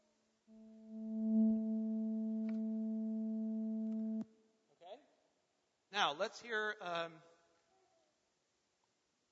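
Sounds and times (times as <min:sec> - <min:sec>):
220 hertz electronic tone, A below middle C: 0:00.5 - 0:04.2
speech: 0:06.0 - 0:07.3.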